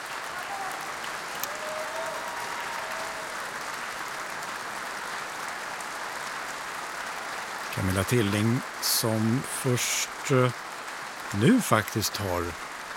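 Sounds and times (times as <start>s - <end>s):
concert hall applause: 0.0s - 12.9s
speech: 7.8s - 10.6s, 11.3s - 12.7s.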